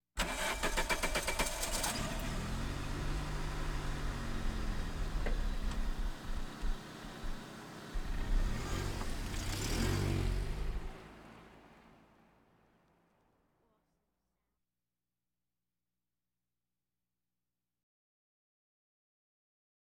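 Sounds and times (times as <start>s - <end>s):
various automobiles: 0.2s - 13.4s.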